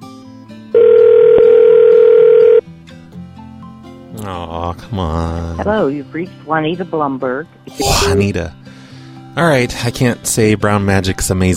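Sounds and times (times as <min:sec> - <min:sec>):
telephone ring tone on the line: 0:00.7 - 0:02.6
speech: 0:04.9 - 0:08.6, 0:09.4 - 0:11.5.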